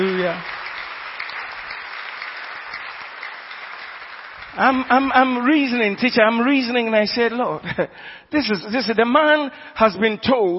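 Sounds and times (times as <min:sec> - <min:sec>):
speech: 0:00.0 - 0:00.6, 0:04.6 - 0:10.5
audience clapping: 0:00.0 - 0:05.9.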